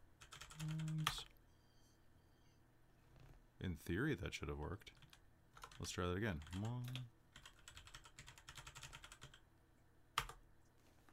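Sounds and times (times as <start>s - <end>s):
typing on a computer keyboard: 0.2s - 1.3s, 4.9s - 9.4s, 10.2s - 10.4s
speech: 0.6s - 1.0s, 3.6s - 5.0s, 5.8s - 7.2s.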